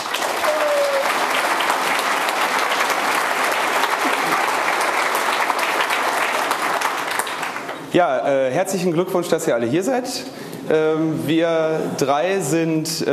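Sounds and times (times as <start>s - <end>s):
warm applause from audience: 0.0s - 7.9s
speech: 7.9s - 13.1s.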